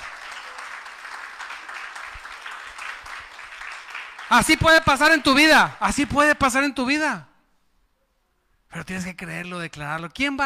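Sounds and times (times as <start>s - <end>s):
audience applauding: 0.0s - 5.6s
speech: 4.3s - 7.3s, 8.7s - 10.4s.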